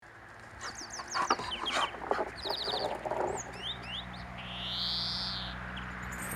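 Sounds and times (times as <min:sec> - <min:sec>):
European greenfinch Chloris chloris trill calls: 0:00.6 - 0:05.6.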